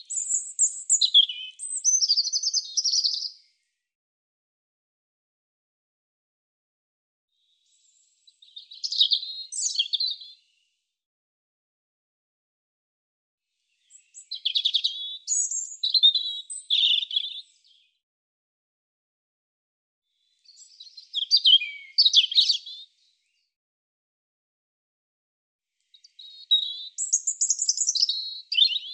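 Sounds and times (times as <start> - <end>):
European robin song of high thin warbles and trills: 0.0 - 3.3, 8.5 - 10.2, 13.9 - 17.4, 20.5 - 22.8, 25.8 - 28.9.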